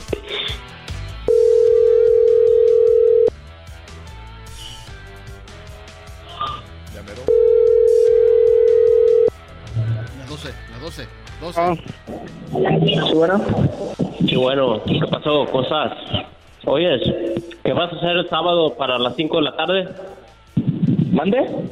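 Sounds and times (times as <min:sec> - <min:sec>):
faint music: 0:00.0 - 0:21.7
telephone ringback tone: 0:01.3 - 0:03.3, 0:07.3 - 0:09.4
speech: 0:11.6 - 0:20.2, 0:21.2 - 0:21.7.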